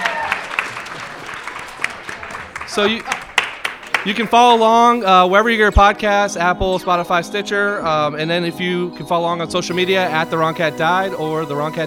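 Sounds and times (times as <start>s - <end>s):
audience applause: 0.0s - 5.3s
speech: 2.8s - 3.2s, 4.0s - 11.8s.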